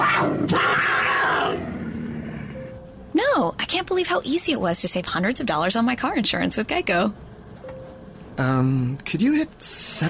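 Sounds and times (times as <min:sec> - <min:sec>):
puma growling: 0:00.0 - 0:02.6
speech: 0:03.8 - 0:07.3, 0:08.4 - 0:10.0.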